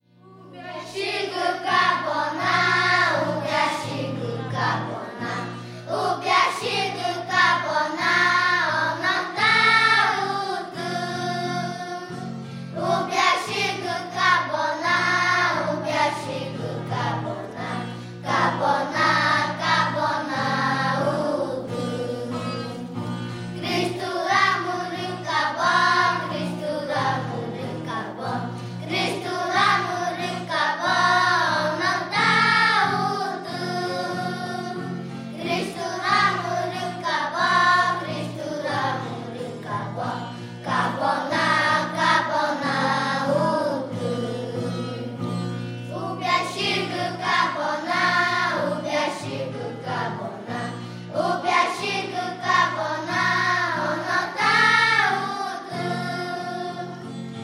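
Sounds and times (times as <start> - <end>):
Macushi village children's choir singing: 0.2 - 57.4.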